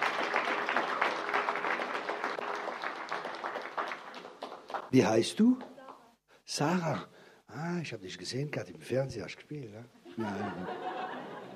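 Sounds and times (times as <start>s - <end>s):
audience applause: 0.0s - 5.1s
speech: 4.9s - 5.7s, 6.5s - 10.9s
laughter: 10.1s - 11.5s.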